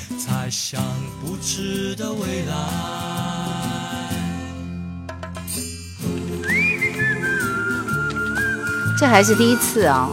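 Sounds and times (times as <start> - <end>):
speech: 0.1 - 4.2, 9.0 - 10.1
whistled melody in a song: 6.2 - 10.1.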